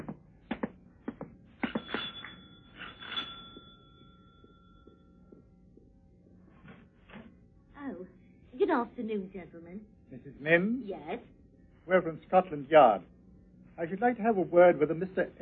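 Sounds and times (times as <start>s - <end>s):
front doorbell ringing: 1.6s - 5.4s
speech: 8.7s - 13.1s, 13.8s - 15.3s.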